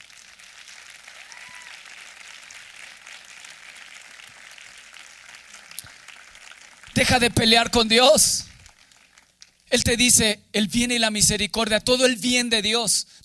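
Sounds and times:
audience applauding: 0.0s - 9.7s
speech: 7.0s - 8.5s, 9.7s - 13.2s.

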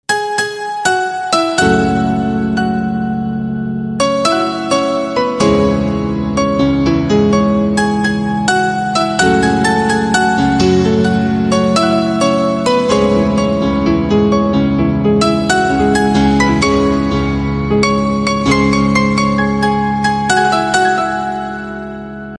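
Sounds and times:
instrumental piano ringtone: 0.1s - 22.3s.

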